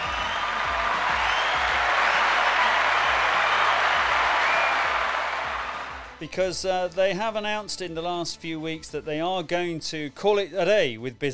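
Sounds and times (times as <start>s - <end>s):
round of applause: 0.0s - 6.2s
speech: 6.2s - 11.3s.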